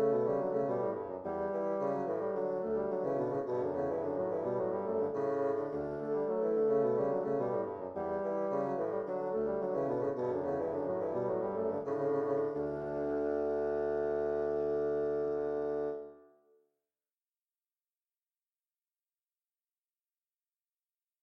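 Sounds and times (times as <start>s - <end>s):
bassoon fugue in D major: 0.0s - 16.3s.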